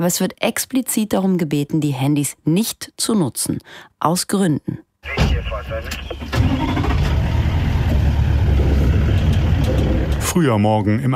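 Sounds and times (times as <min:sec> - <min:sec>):
speech: 0:00.0 - 0:06.9, 0:10.2 - 0:11.1
safari jeep engine starting: 0:05.2 - 0:10.4.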